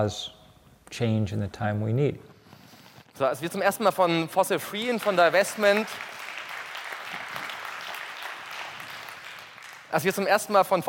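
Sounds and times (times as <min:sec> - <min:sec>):
speech: 0:00.0 - 0:02.3, 0:03.2 - 0:06.1, 0:09.9 - 0:10.8
large crowd applauding at a Fossil Free divestment event: 0:04.6 - 0:10.2.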